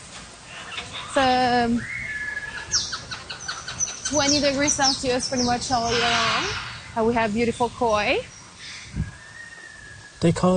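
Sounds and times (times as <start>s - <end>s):
hiss: 0.0s - 10.5s
tropical birds chirping in a conservatory: 0.3s - 10.5s
speech: 1.2s - 2.0s, 4.1s - 8.3s, 10.2s - 10.5s
long steady whistle: 9.0s - 10.3s.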